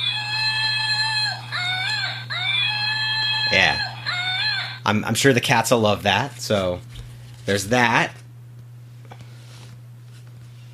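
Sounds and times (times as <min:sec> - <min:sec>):
screaming monkey toy: 0:00.0 - 0:04.9
speech: 0:04.9 - 0:08.2.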